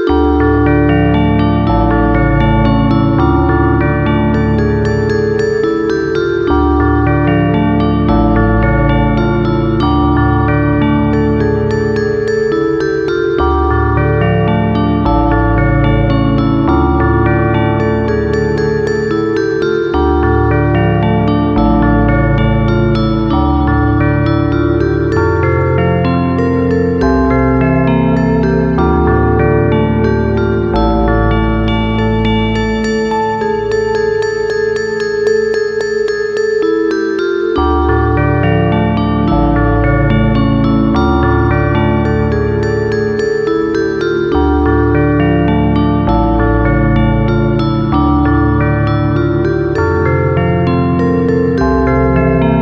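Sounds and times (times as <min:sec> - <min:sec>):
soundtrack music: 0:00.1 - 0:52.6.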